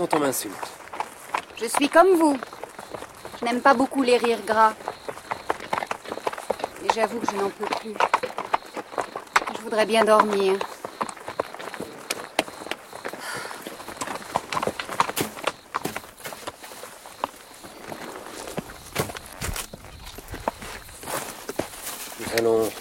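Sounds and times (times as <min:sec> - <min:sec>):
speech: 0:00.0 - 0:00.8, 0:01.6 - 0:04.9, 0:06.9 - 0:08.2, 0:09.6 - 0:10.7
continuous rustling background in a wood: 0:00.0 - 0:22.7
loaded horses' hooves clopping in a wood: 0:00.0 - 0:22.7.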